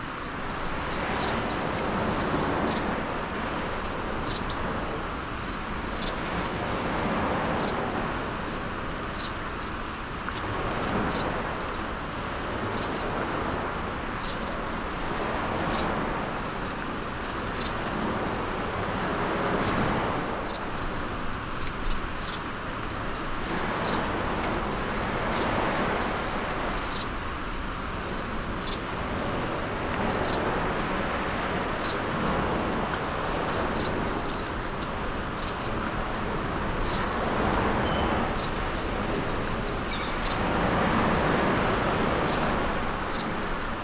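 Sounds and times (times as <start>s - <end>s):
ambience: 0.0s - 43.8s.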